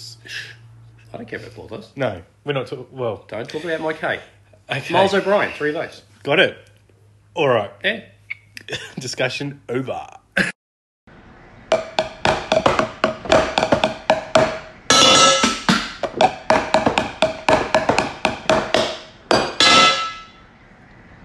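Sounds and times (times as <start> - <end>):
speech: 1.1 - 6.7, 7.4 - 8.1, 8.7 - 10.5
pots and pans being hit: 11.7 - 20.4.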